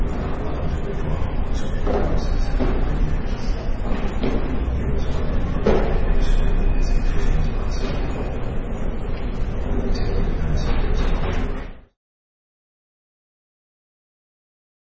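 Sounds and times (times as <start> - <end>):
airport ambience: 0.0 - 11.9.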